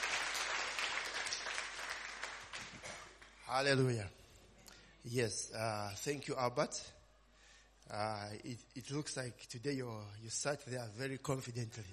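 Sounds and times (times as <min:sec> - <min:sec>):
audience applause: 0:00.0 - 0:03.3
speech: 0:03.5 - 0:04.2, 0:05.0 - 0:07.0, 0:07.9 - 0:11.9.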